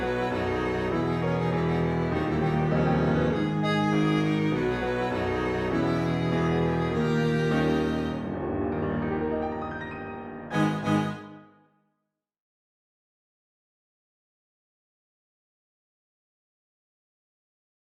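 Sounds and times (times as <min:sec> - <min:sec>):
piano quartet remix: 0:00.0 - 0:11.5.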